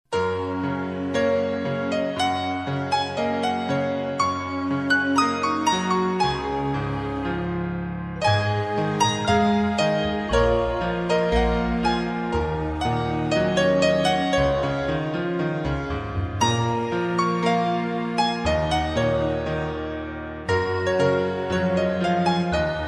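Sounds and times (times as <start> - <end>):
ringback tone background music: 0.1 - 22.8.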